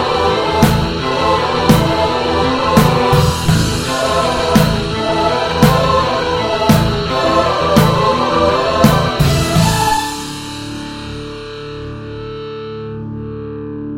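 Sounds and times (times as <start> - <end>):
choir singing: 0.0 - 11.1
strings: 0.0 - 12.2.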